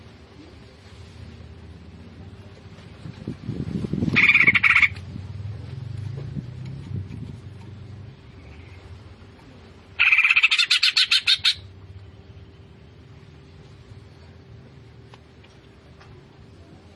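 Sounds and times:
Greater green leafbird singing fast chattering notes: 0:04.1 - 0:05.0, 0:10.0 - 0:11.7.

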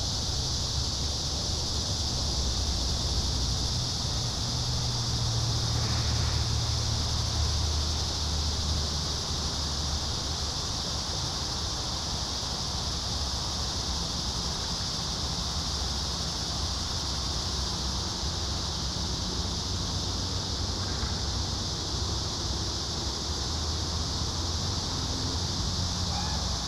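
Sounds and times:
cicadas droning in a park: 0:00.0 - 0:26.6.

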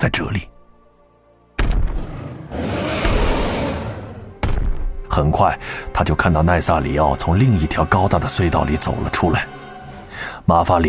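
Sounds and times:
speech: 0:00.0 - 0:00.5, 0:05.2 - 0:09.6, 0:10.2 - 0:10.8
thunderous roar of a dragon: 0:01.9 - 0:04.4.

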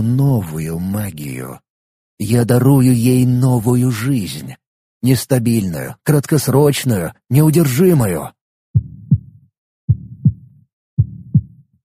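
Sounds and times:
speech: 0:00.0 - 0:01.6, 0:02.2 - 0:08.9
heartbeat sound effect: 0:08.8 - 0:11.8.

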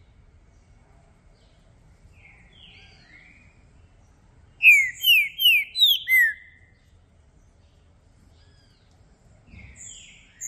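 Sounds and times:
green-winged saltator whistled notes: 0:04.6 - 0:06.6.

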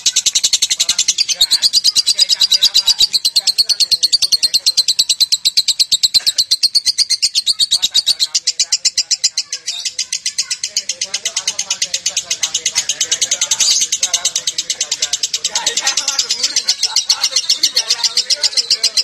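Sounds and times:
lovebird chattering song in konslet style: 0:00.0 - 0:19.0
laughter: 0:14.1 - 0:19.0.

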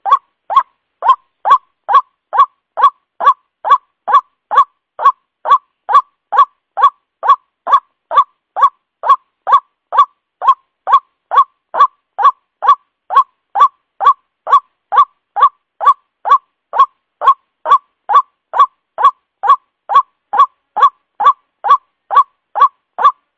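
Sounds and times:
white-breasted waterhen lure call of nasal upward-inflected notes: 0:00.0 - 0:23.3.

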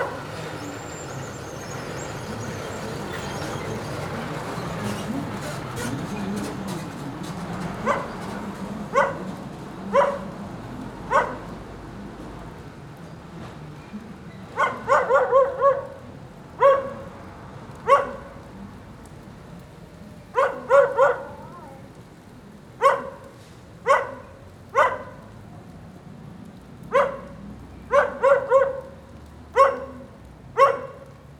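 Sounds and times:
dog barking: 0:00.0 - 0:00.3, 0:07.8 - 0:08.2, 0:08.9 - 0:10.4, 0:11.1 - 0:11.6, 0:14.6 - 0:17.1, 0:17.7 - 0:18.5, 0:20.3 - 0:21.8, 0:22.8 - 0:25.3, 0:26.9 - 0:31.1
heavy rain: 0:00.0 - 0:31.3.

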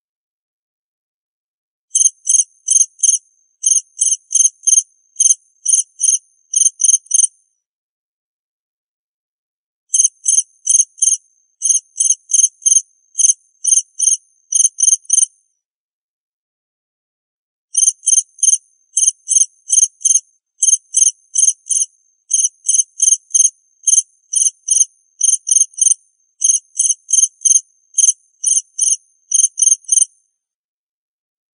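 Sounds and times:
cricket chirping: 0:01.9 - 0:07.4, 0:09.9 - 0:15.4, 0:17.8 - 0:30.2.

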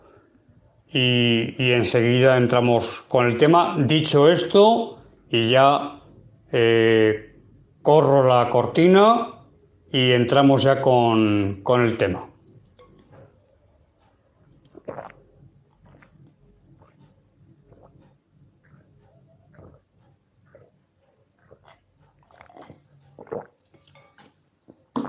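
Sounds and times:
speech: 0:00.9 - 0:09.3, 0:09.9 - 0:12.3
person drinking a long gulp: 0:14.6 - 0:25.0.

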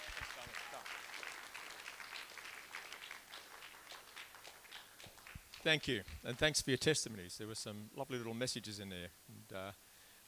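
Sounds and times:
crowd clapping and cheering for a man coming to share his testimony: 0:00.0 - 0:06.5
speech: 0:05.6 - 0:09.8.

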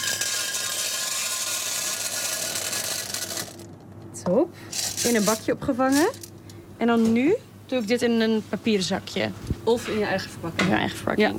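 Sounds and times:
dry chickpeas pouring from a bulk dispenser: 0:00.0 - 0:03.6
speech: 0:04.2 - 0:06.2, 0:06.8 - 0:11.3.

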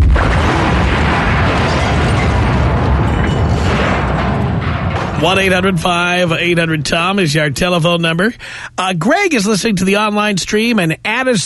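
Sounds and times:
explosion sound effect with crackling debris: 0:00.0 - 0:07.0
speech: 0:05.2 - 0:11.4.

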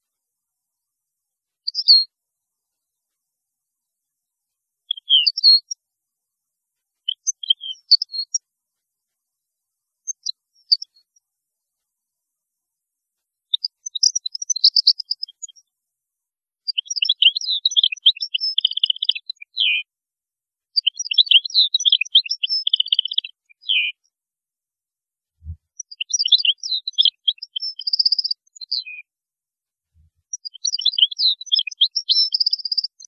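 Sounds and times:
European goldfinch song: 0:01.6 - 0:02.1, 0:04.8 - 0:05.8, 0:07.0 - 0:08.4, 0:10.0 - 0:11.2, 0:13.5 - 0:15.7, 0:16.6 - 0:19.9, 0:20.8 - 0:24.1, 0:25.4 - 0:29.1, 0:30.1 - 0:33.0.

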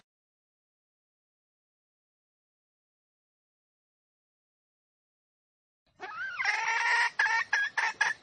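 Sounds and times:
female junglefowl squawking lure call: 0:06.0 - 0:08.2.

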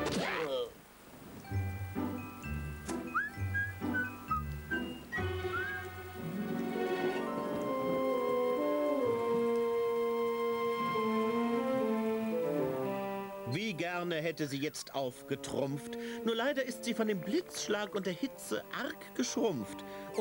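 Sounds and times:
rain falling: 0:00.0 - 0:13.4
sustained melodic tones: 0:01.5 - 0:14.2
speech: 0:14.2 - 0:20.1.

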